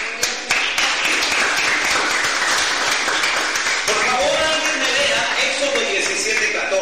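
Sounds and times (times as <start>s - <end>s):
sustained applause from a large crowd: 0.0s - 6.7s.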